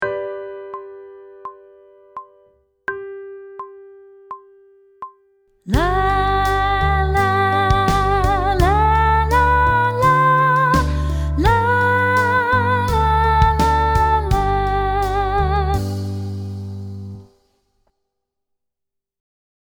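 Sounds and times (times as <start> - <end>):
person sight singing pop vocals: 5.7 - 16.5.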